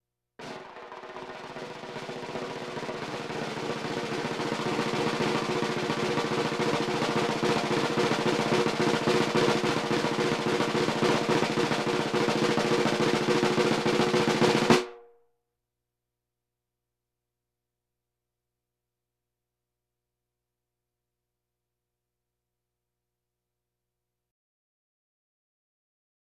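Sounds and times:
timpani rolls: 0.4s - 14.9s
drums: 0.4s - 15.0s
bongos: 0.4s - 15.1s.

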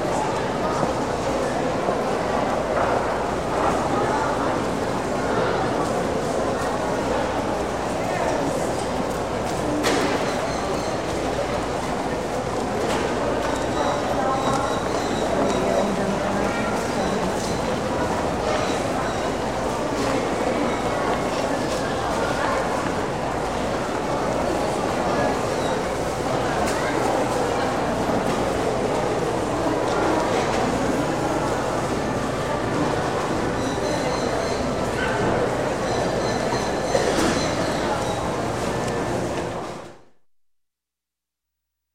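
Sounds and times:
large indoor shopping mall ambience: 0.0s - 40.2s.

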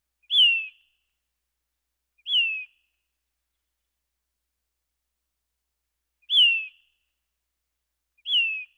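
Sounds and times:
birds: 0.2s - 1.0s, 2.2s - 4.2s, 6.2s - 7.1s, 8.2s - 8.7s.

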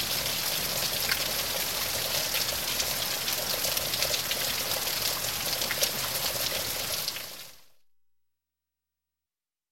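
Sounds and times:
rain flowing heavily from eaves: 0.0s - 7.6s.

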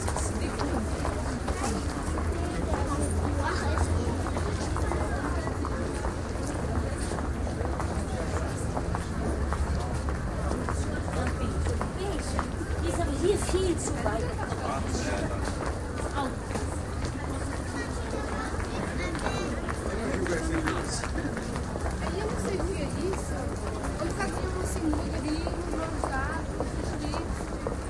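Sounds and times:
large crowd voices in a shopping mall: 0.0s - 27.8s.

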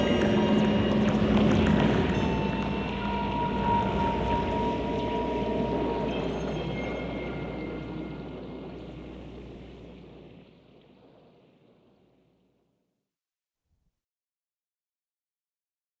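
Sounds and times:
ghostly music: 0.0s - 10.4s.

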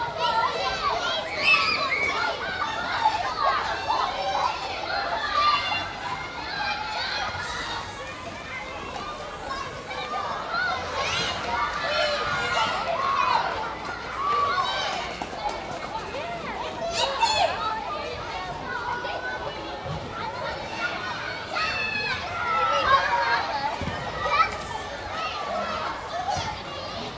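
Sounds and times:
school playground exterior ambience with people: 0.0s - 27.1s.

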